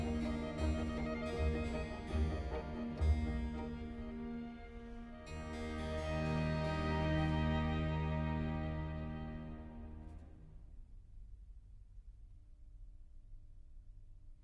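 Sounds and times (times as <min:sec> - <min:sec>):
music: 0:00.0 - 0:10.6.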